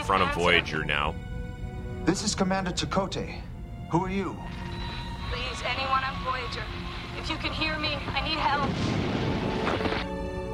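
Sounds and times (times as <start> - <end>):
speech: 0.1 - 1.3, 2.0 - 10.1
explosion on a spaceship: 8.6 - 10.0.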